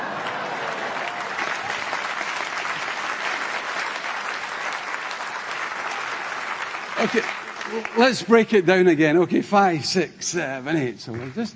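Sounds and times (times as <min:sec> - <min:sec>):
audience clapping: 0:00.0 - 0:09.0
speech: 0:07.0 - 0:11.5.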